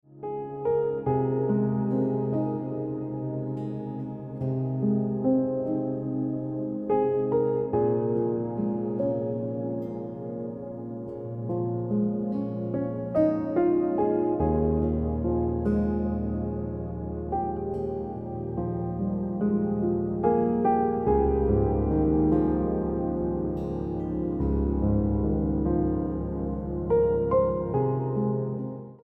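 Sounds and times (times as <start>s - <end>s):
piano music: 0.0s - 29.0s.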